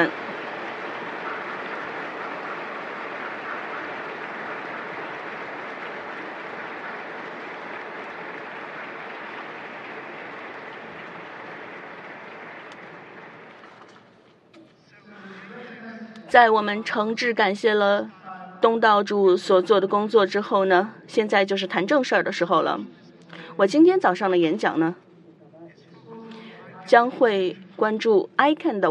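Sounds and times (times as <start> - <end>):
audience applause: 0.0 - 14.1
speech: 16.3 - 23.0, 23.6 - 25.0, 26.9 - 28.9.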